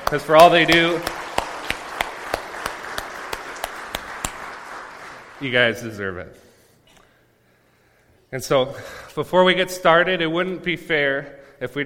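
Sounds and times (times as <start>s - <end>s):
audience applause: 0.0s - 5.8s
speech: 0.1s - 1.2s, 5.4s - 6.4s, 8.3s - 11.8s.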